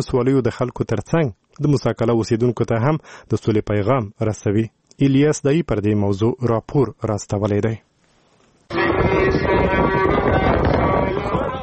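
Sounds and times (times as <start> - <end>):
speech: 0.0 - 7.9
low droning hum: 8.7 - 11.6
strong dusty wind blowing: 8.7 - 11.6.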